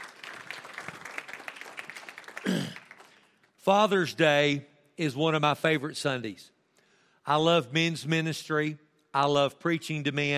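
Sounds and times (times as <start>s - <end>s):
crowd applause: 0.0s - 3.3s
speech: 3.6s - 6.6s, 7.2s - 10.3s.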